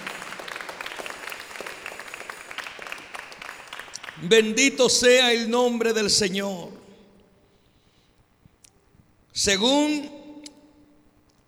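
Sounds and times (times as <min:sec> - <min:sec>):
audience applauding: 0:00.0 - 0:04.8
speech: 0:04.2 - 0:06.8, 0:09.4 - 0:10.2.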